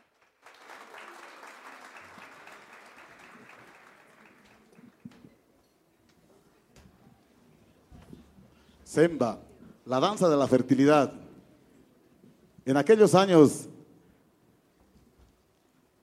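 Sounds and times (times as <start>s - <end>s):
audience applause: 0.0s - 5.1s
speech: 8.9s - 11.2s, 12.7s - 13.7s.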